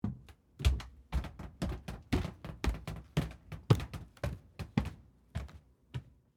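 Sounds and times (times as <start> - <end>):
footsteps going up carpeted stairs heard from underneath: 0.0 - 6.2.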